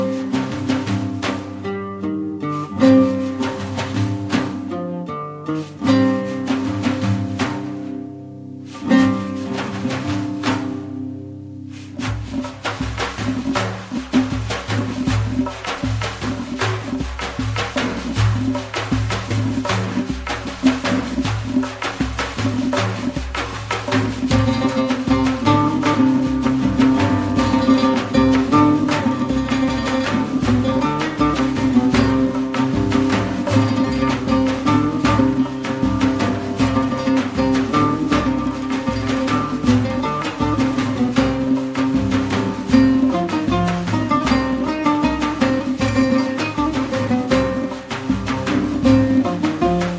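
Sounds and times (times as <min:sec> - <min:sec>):
oud: 0:00.0 - 0:49.9.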